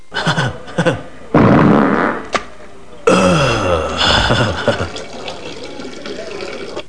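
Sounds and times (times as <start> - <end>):
laughter: 0.0 - 1.4, 2.6 - 6.8
fart: 1.6 - 2.3.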